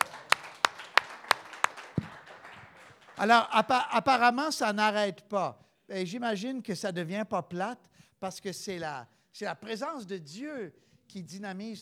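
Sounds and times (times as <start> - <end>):
single pair of hands clapping: 0.0 - 3.8
speech: 3.2 - 11.7.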